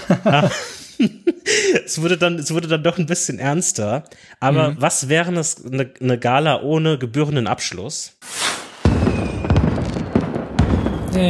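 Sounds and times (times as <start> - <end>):
laughter: 0.0 - 2.4, 4.5 - 4.8
speech: 0.1 - 8.6
small fireworks display: 8.2 - 11.2.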